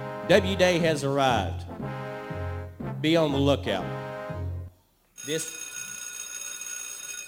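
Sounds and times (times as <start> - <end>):
speech: 0.3 - 1.6, 3.0 - 4.0, 5.3 - 5.6
doorbell ringing: 5.2 - 7.2.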